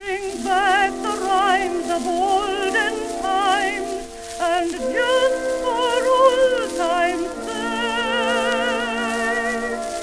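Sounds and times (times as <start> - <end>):
simple musical theater jukebox melody: 0.0 - 10.0.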